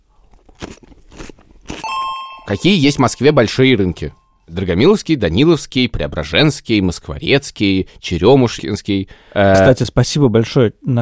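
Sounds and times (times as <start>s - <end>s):
crunching on a cucumber: 0.0s - 1.9s
steady high-pitched electronic beep tone: 1.8s - 4.1s
speech: 2.5s - 10.9s.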